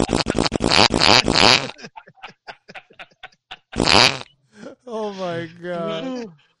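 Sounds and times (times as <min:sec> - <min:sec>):
repeated farts like revving engine: 0:00.0 - 0:01.8, 0:03.8 - 0:04.3
laughter: 0:00.0 - 0:03.9, 0:04.6 - 0:06.4.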